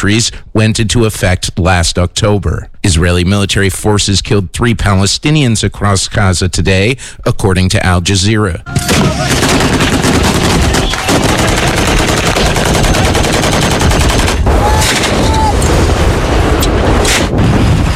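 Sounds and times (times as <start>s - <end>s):
speech: 0.0s - 9.9s
gunfire from Yemeni government forces shooting at Houthi fighters: 8.7s - 17.9s.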